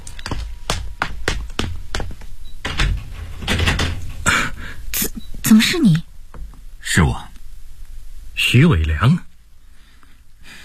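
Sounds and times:
door being opened: 0.0 - 4.6
speech: 5.5 - 6.1, 6.9 - 7.3, 8.4 - 9.3.

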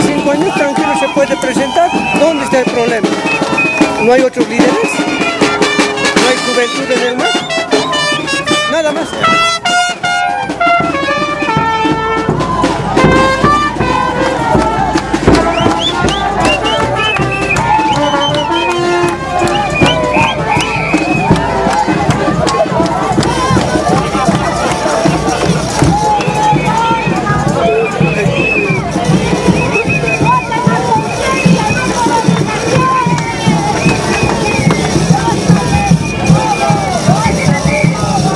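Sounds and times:
campaign crowd whistling: 0.0 - 5.4, 15.4 - 21.4, 27.6 - 32.0, 33.4 - 38.2
political campaign crowd in Plaza Río Sinio, La Paz, Bolivia: 0.0 - 38.3
speech: 0.3 - 1.6, 4.0 - 5.2, 6.6 - 7.6.

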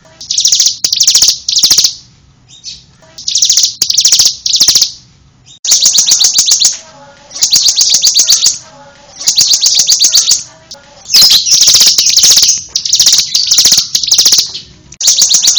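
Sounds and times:
bird giving rapid high chattering notes: 0.1 - 15.5.

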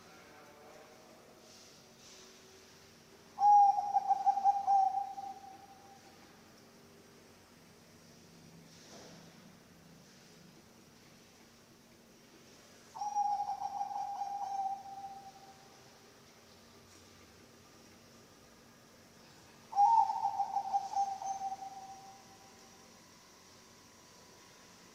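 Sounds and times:
faint hiss: 0.0 - 24.9
zebra dove cooing: 3.4 - 5.7, 13.0 - 15.5, 19.7 - 22.2.

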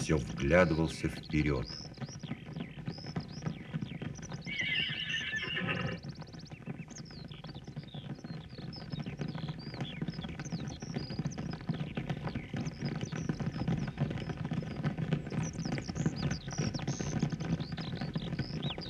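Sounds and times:
shuffling hoofbeats from horses walking: 0.0 - 18.8
speech: 0.1 - 2.0
Kabardin horse whinnying: 4.5 - 6.1.

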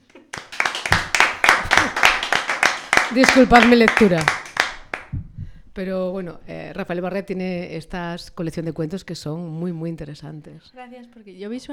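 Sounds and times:
hand clapping at a reading event for a 40th-anniversary marathon: 0.0 - 5.2
speech: 3.1 - 4.4, 5.8 - 11.7.

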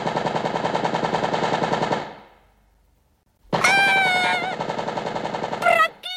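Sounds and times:
machine gun firing: 0.0 - 2.3, 3.6 - 6.0.

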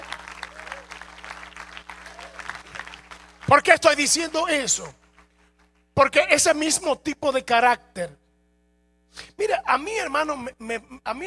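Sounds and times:
audience applause: 0.0 - 5.5
speech: 3.5 - 5.0, 6.0 - 8.2, 9.1 - 11.2.

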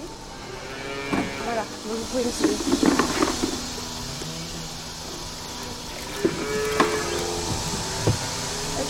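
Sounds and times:
steady mechanical hum: 0.0 - 8.8
cows mooing in a barn during milking: 0.3 - 1.7, 3.1 - 4.9, 6.0 - 8.8.

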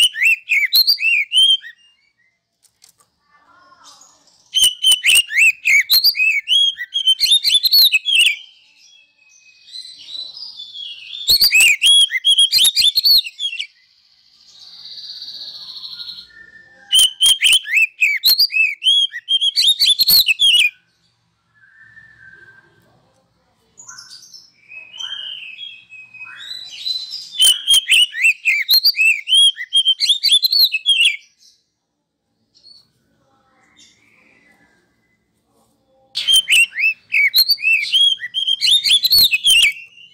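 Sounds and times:
Oriental magpie-robin song: 0.0 - 2.4, 3.8 - 21.1, 23.8 - 31.7, 36.1 - 40.1.

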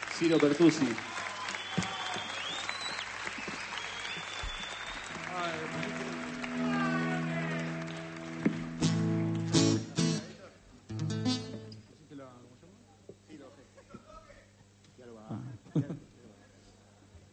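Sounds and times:
crowd applauding: 0.0 - 10.3
speech: 0.2 - 1.2
shouts and whistles: 1.2 - 3.1, 3.7 - 5.1.

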